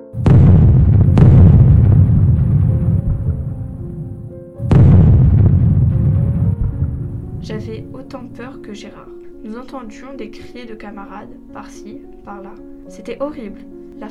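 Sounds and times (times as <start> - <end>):
artillery shells exploding: 0.2 - 7.9
speech: 8.1 - 14.0.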